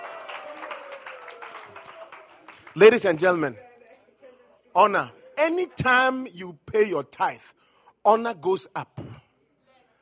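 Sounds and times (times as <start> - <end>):
congregation clapping during a church sermon: 0.0 - 3.6
speech: 2.8 - 3.6, 4.8 - 9.0.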